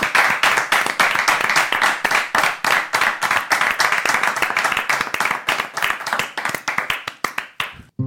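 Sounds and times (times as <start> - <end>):
audience applause: 0.0 - 7.9.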